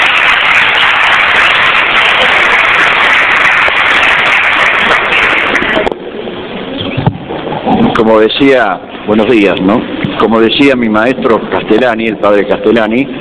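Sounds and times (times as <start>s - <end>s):
audience applause: 0.0s - 6.0s
speech: 8.1s - 13.1s.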